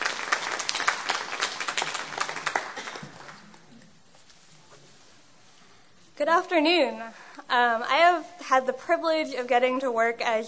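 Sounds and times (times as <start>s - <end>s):
audience applause: 0.0s - 3.5s
speech: 6.2s - 10.4s.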